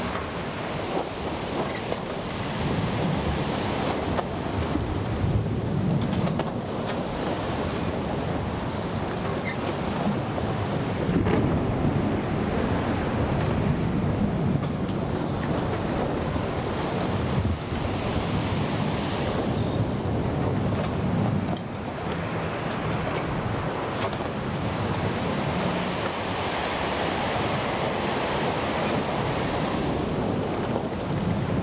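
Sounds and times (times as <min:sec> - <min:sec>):
sea storm ambience: 0:00.0 - 0:31.6.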